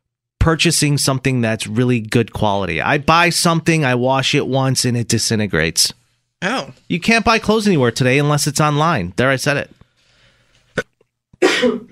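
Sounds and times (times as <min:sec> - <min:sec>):
speech: 0:00.4 - 0:09.8, 0:11.6 - 0:11.8
sneeze: 0:10.8 - 0:11.8.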